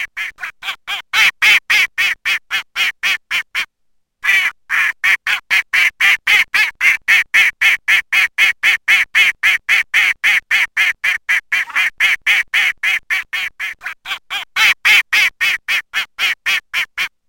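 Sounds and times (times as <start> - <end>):
mallard quacking: 0.0 - 17.1.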